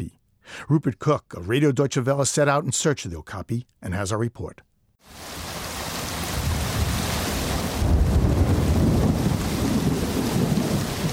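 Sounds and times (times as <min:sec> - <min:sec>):
speech: 0:00.0 - 0:05.4
torrential rain in the forests of Ituri province in northeastern Congo: 0:05.0 - 0:11.1.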